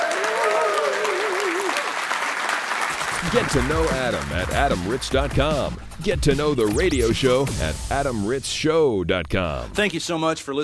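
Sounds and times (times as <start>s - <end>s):
crowd applause: 0.0s - 2.9s
speech: 3.2s - 10.6s.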